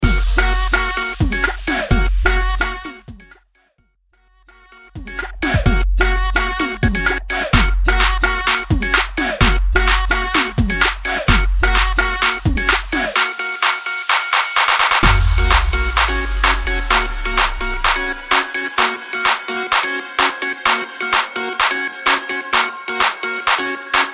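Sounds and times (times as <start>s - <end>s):
tribal mix dance music: 0.0s - 3.5s, 4.9s - 24.1s.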